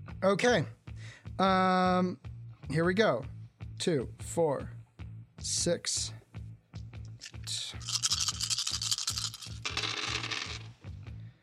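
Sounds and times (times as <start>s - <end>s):
speech: 0.2s - 0.8s, 1.4s - 4.8s, 5.4s - 6.2s
many dice being rolled: 7.2s - 10.8s.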